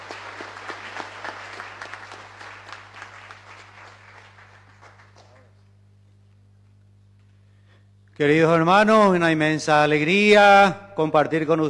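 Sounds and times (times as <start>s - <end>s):
audience applause: 0.0s - 5.6s
speech: 8.2s - 11.6s.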